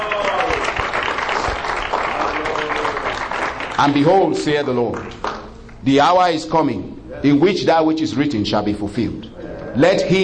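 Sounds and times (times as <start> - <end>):
audience clapping hands: 0.0 - 5.5
speech: 3.8 - 5.2, 5.8 - 10.2.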